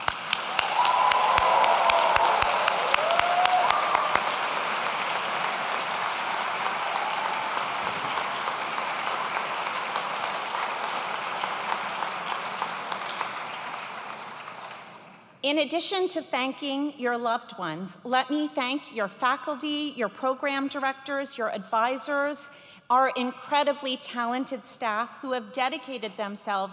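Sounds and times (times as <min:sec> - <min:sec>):
graduation audience applauding loudly: 0:00.0 - 0:15.3
speech: 0:15.5 - 0:26.7.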